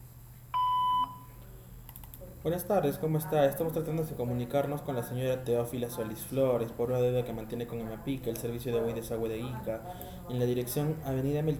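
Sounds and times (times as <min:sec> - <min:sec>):
voicemail beep tone: 0:00.6 - 0:01.3
speech: 0:02.4 - 0:11.5.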